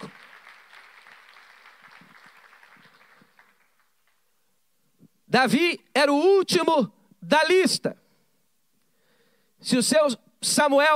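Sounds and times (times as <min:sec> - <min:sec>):
audience applauding: 0:00.0 - 0:04.4
speech: 0:05.3 - 0:08.0, 0:09.6 - 0:10.9.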